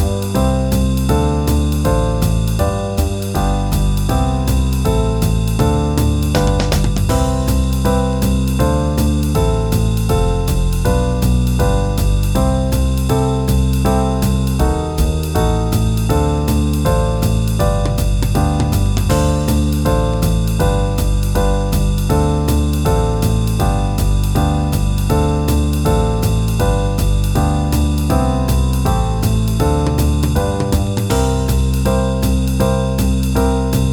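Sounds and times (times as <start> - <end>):
backing track in C major: 0.0 - 33.9.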